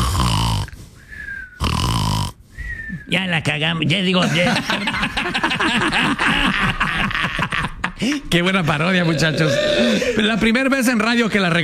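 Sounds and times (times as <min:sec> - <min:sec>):
person imitating snoring: 0:00.0 - 0:00.8, 0:01.6 - 0:02.4
faint thin whistle: 0:01.0 - 0:01.6, 0:02.6 - 0:03.1
speech: 0:03.1 - 0:11.6
laughter: 0:04.2 - 0:10.3.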